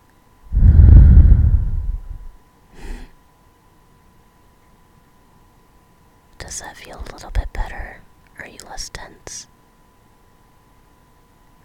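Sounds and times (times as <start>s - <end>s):
deep breath in and out: 0.5s - 3.2s
speech: 6.5s - 9.5s.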